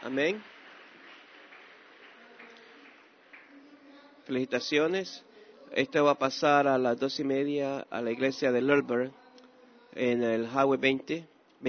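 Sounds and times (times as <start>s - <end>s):
speech: 0.0s - 0.6s, 4.3s - 9.2s, 9.9s - 11.6s
applause: 0.0s - 4.0s.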